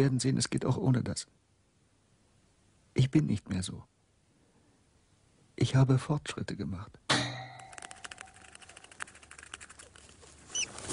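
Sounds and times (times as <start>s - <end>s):
speech: 0.0s - 1.4s, 3.0s - 3.9s, 5.6s - 7.3s
rats scratching in a wire cage: 7.7s - 10.9s.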